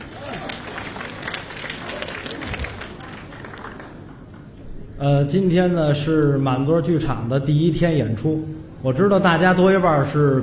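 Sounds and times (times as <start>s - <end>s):
theater audience applause: 0.0s - 4.6s
speech: 5.0s - 10.4s.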